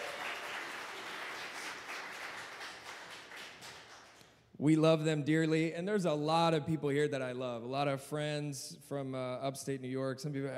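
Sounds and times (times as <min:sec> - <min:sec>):
audience clapping: 0:00.0 - 0:04.4
speech: 0:04.6 - 0:10.5.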